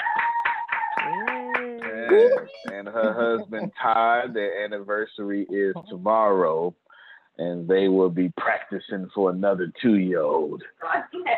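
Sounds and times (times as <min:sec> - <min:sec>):
audience clapping: 0:00.0 - 0:04.4
laughter: 0:00.0 - 0:06.7, 0:07.4 - 0:10.6
speech: 0:02.1 - 0:06.8, 0:07.4 - 0:11.3.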